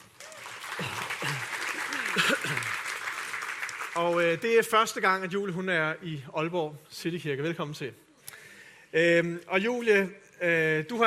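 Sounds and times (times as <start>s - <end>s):
audience applause at Aalborg Citykirke church: 0.0s - 5.0s
speech: 4.0s - 8.0s, 8.9s - 11.0s.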